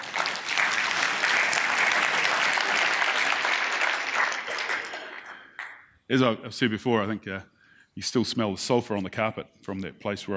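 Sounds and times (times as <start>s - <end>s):
audience clapping: 0.0s - 6.0s
speech: 6.1s - 10.3s.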